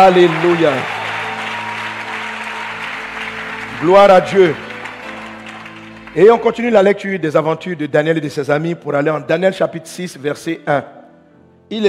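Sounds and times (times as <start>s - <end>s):
speech: 0.0s - 1.0s, 3.8s - 4.6s, 6.1s - 11.0s, 11.7s - 11.8s
church congregation applauding: 0.0s - 7.0s.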